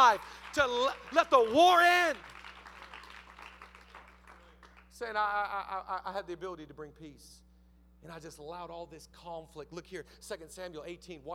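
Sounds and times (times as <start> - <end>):
speech: 0.0 - 2.3, 5.0 - 7.4, 8.0 - 11.3
audience applause: 0.0 - 4.8
low constant hum: 0.0 - 11.3.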